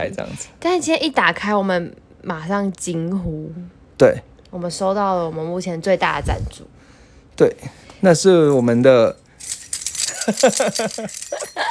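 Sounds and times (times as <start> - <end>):
speech: 0.0 - 6.8, 7.4 - 9.2, 10.3 - 11.6
motorcycle keys being shaken: 9.2 - 11.6.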